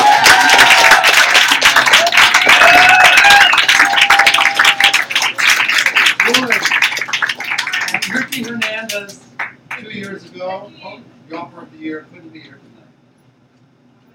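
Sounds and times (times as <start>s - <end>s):
voices and whoops: 0.0s - 5.1s
audience applauding a poet at a poetry reading: 0.0s - 9.9s.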